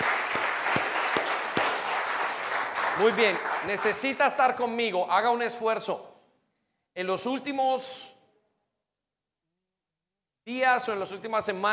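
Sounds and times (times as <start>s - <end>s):
applause: 0.0s - 4.6s
speech: 3.0s - 6.1s, 7.0s - 8.1s, 10.4s - 11.7s.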